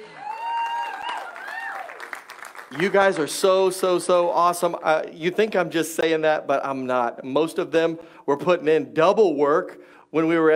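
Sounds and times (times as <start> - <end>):
round of applause: 0.0 - 4.4
speech: 2.7 - 10.5.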